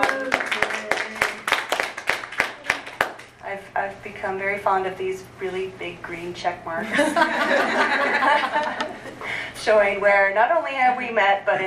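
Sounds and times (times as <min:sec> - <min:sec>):
round of applause around a table: 0:00.0 - 0:03.3
speech: 0:03.8 - 0:09.0, 0:09.6 - 0:11.6
laughter: 0:06.8 - 0:09.2.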